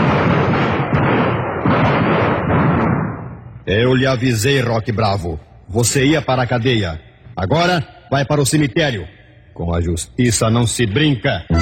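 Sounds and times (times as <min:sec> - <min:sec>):
volley of gunshots in a radio drama: 0:00.0 - 0:04.1
speech: 0:03.7 - 0:11.6.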